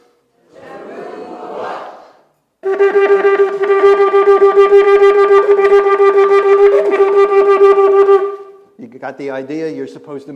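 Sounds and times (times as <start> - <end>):
shofar teruah blast: 2.6 - 8.7
speech: 9.2 - 10.3.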